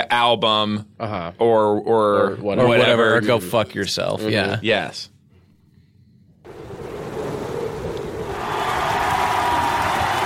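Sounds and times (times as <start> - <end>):
speech: 0.1 - 5.1
crowd cheering and clapping: 8.2 - 10.2.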